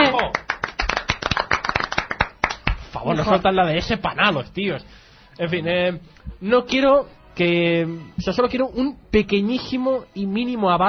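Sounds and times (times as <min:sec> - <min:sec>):
studio audience clapping: 0:00.0 - 0:03.1
speech: 0:03.0 - 0:10.8.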